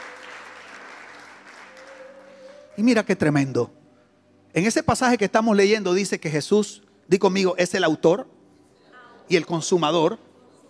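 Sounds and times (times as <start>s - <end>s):
audience applauding: 0.0s - 3.0s
speech: 2.8s - 3.8s, 4.5s - 8.3s, 9.3s - 10.3s.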